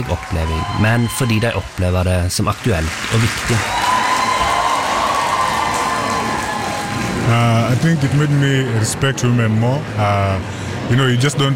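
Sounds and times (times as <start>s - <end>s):
speech: 0.0s - 3.9s, 7.3s - 11.5s
theatre audience cheering after a play: 0.0s - 8.3s.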